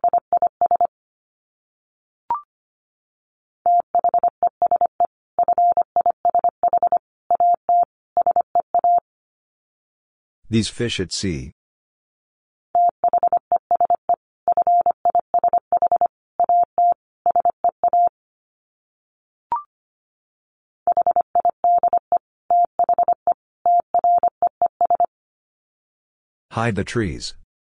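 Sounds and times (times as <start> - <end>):
Morse code dits at 25 wpm: 0.0 - 0.9, 3.7 - 9.0, 12.8 - 18.1, 20.9 - 25.1
speech: 10.5 - 11.6, 26.6 - 27.4.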